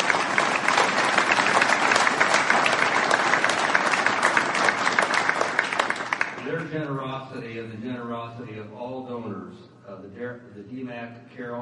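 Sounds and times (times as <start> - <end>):
audience applause: 0.0 - 6.5
speech: 6.7 - 11.6.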